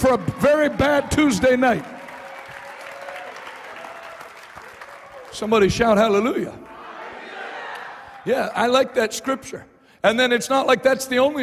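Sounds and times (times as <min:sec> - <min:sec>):
speech: 0:00.0 - 0:01.9, 0:05.4 - 0:06.7, 0:08.2 - 0:11.4
audience clapping hands: 0:00.0 - 0:06.2.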